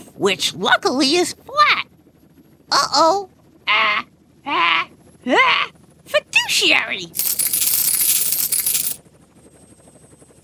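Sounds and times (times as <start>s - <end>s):
speech: 0.2s - 1.7s, 2.7s - 4.6s, 5.3s - 5.7s, 6.5s - 7.3s
dimes spilling out and jingling: 7.2s - 9.0s.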